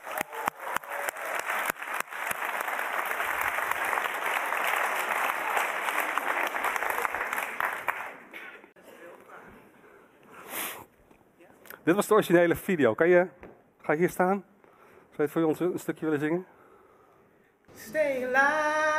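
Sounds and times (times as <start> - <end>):
audience applause: 0.0 - 8.3
speech: 11.9 - 14.5, 15.2 - 16.6, 17.9 - 18.8.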